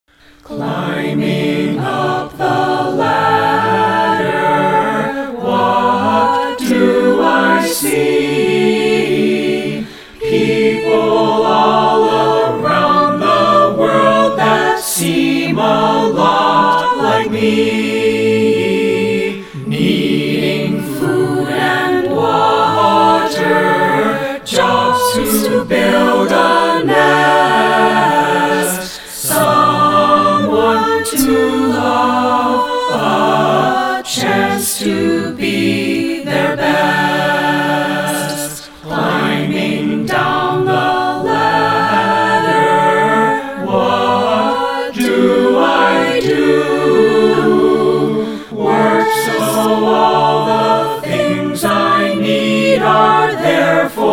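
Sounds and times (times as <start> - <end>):
choir singing: 0.1 - 54.1.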